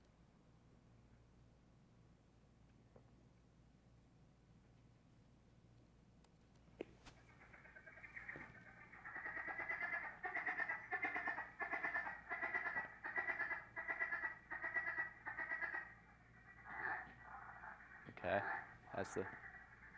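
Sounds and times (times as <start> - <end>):
frog calling in pulsing trills: 7.1 - 19.9.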